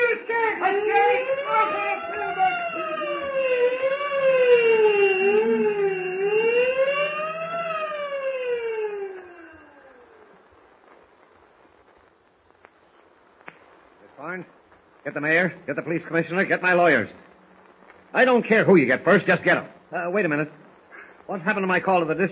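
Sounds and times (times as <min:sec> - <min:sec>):
prison alarm wailing siren: 0:00.0 - 0:10.5
faint clicks: 0:12.6 - 0:14.1
speech: 0:15.1 - 0:17.2, 0:18.1 - 0:20.6, 0:21.3 - 0:22.3.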